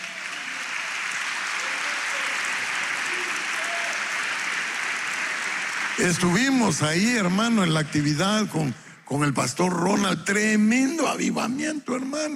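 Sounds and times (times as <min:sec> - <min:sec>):
audience clapping hands: 0:00.0 - 0:08.8
speech: 0:06.0 - 0:12.3.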